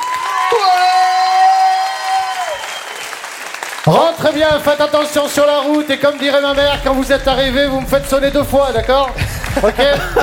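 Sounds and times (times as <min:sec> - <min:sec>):
applause: 0:00.0 - 0:06.6
speech: 0:03.9 - 0:10.2
laughter: 0:09.2 - 0:10.2.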